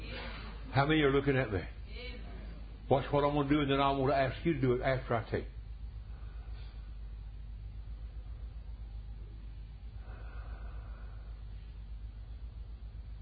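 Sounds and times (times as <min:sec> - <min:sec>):
speech: 0:00.8 - 0:02.2, 0:02.9 - 0:05.6
person breathing: 0:06.0 - 0:07.1, 0:09.9 - 0:12.0.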